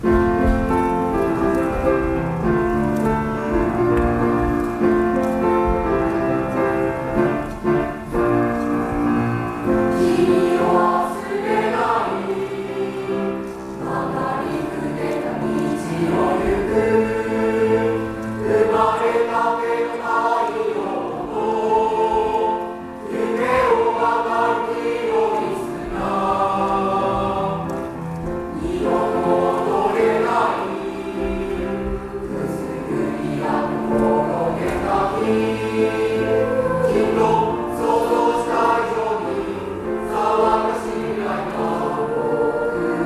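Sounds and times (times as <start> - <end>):
chorus singing: 0.0 - 43.0.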